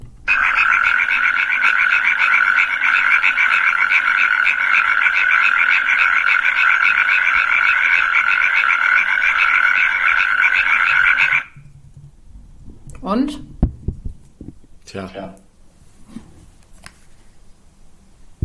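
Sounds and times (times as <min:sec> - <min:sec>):
natterjack toad calling: 0:00.3 - 0:11.6.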